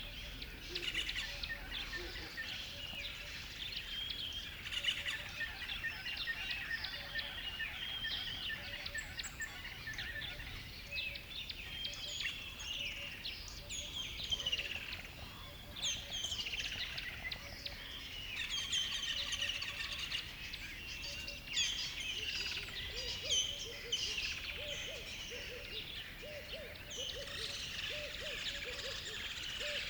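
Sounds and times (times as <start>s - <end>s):
dawn chorus of many birds chirping and trilling on a river bed: 0.2s - 29.8s.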